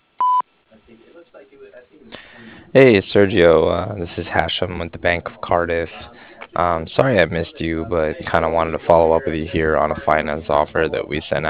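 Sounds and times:
voicemail answering-machine beep: 0:00.2 - 0:00.4
speech: 0:01.4 - 0:11.4.

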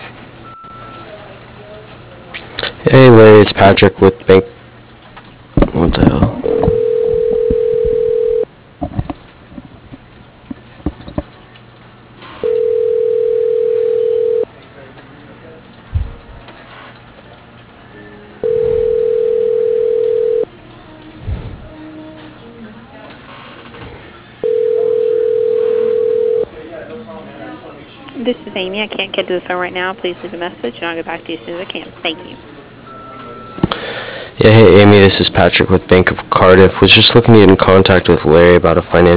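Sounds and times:
voicemail recording tone: 0:00.4 - 0:01.2, 0:06.4 - 0:08.5, 0:12.4 - 0:14.5, 0:18.4 - 0:20.5, 0:24.4 - 0:26.5, 0:32.0 - 0:33.7
speech: 0:02.8 - 0:04.6, 0:29.3 - 0:32.6, 0:34.4 - 0:39.1.

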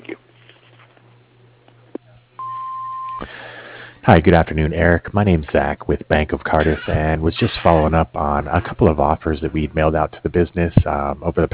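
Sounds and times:
answering machine beep tone: 0:02.4 - 0:03.2
speech: 0:04.0 - 0:11.5.

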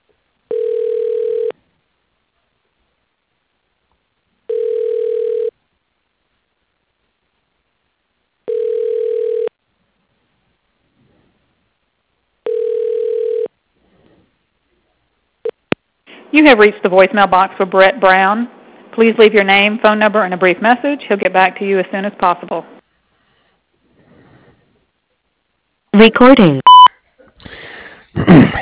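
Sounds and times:
telephone ringback tone during call transfer: 0:00.5 - 0:01.5, 0:04.5 - 0:05.5, 0:08.5 - 0:09.5, 0:12.4 - 0:13.5, 0:26.7 - 0:26.9
speech: 0:16.4 - 0:22.8, 0:26.0 - 0:26.7, 0:28.3 - 0:28.6.

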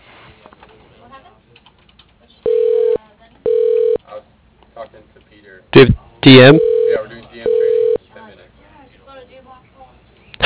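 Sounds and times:
telephone ring tone as an office call is transferred: 0:02.5 - 0:04.0, 0:06.4 - 0:08.0
speech: 0:05.7 - 0:06.7.

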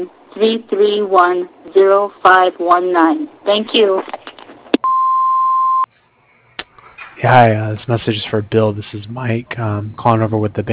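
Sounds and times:
speech: 0:00.0 - 0:04.2, 0:07.2 - 0:10.7
answering machine beep: 0:04.8 - 0:05.9.

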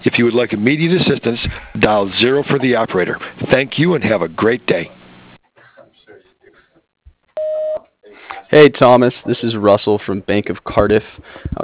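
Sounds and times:
speech: 0:00.1 - 0:05.0, 0:08.5 - 0:11.6
voicemail beep on a telephone line: 0:07.4 - 0:07.8.

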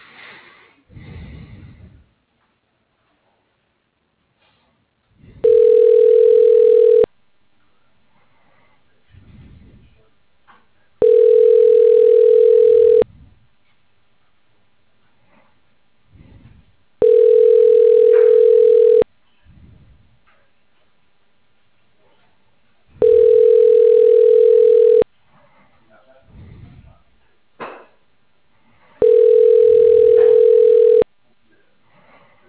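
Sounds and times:
telephone ringing tone: 0:05.4 - 0:07.1, 0:11.0 - 0:13.0, 0:17.0 - 0:19.1, 0:23.0 - 0:25.1, 0:29.0 - 0:31.1.

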